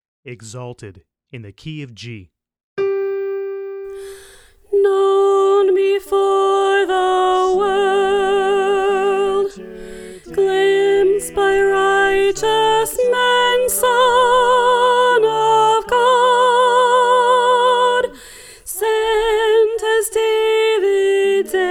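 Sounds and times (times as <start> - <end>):
soprano singing choir part: 3.8 - 21.6.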